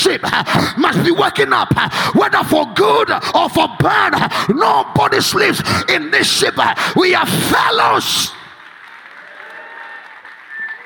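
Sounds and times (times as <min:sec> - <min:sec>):
speech: 0:00.1 - 0:08.4
audience clapping: 0:07.6 - 0:10.8.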